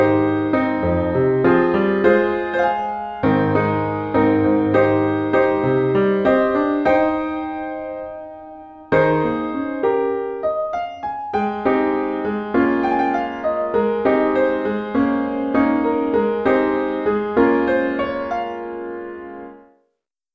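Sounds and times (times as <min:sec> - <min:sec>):
intermediate piano solo: 0:00.0 - 0:19.8.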